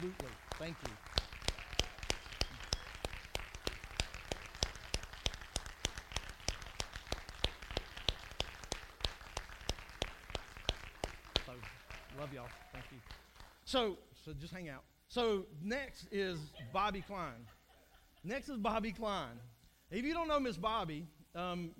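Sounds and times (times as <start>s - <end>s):
speech: 0.0s - 1.2s, 12.4s - 17.6s, 18.2s - 21.7s
small group clapping: 0.0s - 13.7s.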